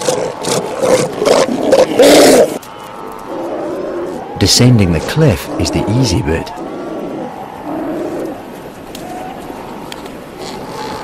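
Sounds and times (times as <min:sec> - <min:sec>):
sea lions roaring: 0:00.0 - 0:02.6, 0:03.2 - 0:04.4, 0:05.0 - 0:11.0
speech: 0:04.4 - 0:06.6.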